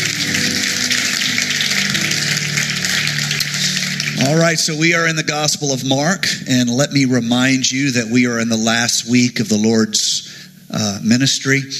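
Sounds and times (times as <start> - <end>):
crowd applauding for volunteers: 0.0 - 5.8
speech: 4.2 - 11.7.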